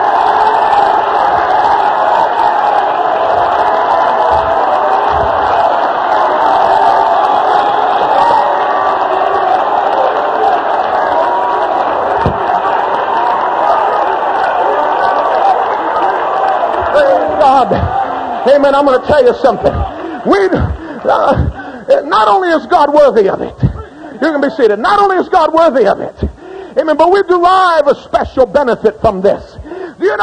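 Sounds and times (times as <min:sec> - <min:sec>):
audience clapping in worship: 0:00.0 - 0:21.8
audience shouting in worship: 0:00.0 - 0:27.9, 0:30.0 - 0:30.2
speech: 0:18.5 - 0:21.4, 0:22.1 - 0:23.6, 0:24.2 - 0:26.2, 0:26.9 - 0:30.2.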